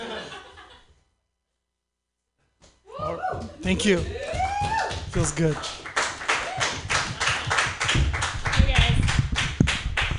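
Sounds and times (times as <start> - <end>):
speech: 3.3 - 5.8
audience clapping: 3.6 - 10.1.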